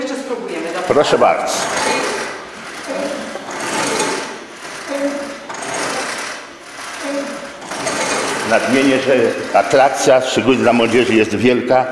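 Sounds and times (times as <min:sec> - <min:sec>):
speech: 0:00.3 - 0:02.0, 0:08.5 - 0:11.9
hand-operated fire pump being pumped: 0:01.5 - 0:11.1.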